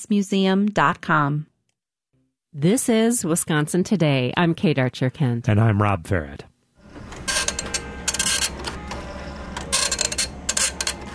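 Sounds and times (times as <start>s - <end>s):
speech: 0.0s - 1.5s, 2.6s - 6.5s
old printer clacking while printing an image: 7.0s - 11.1s.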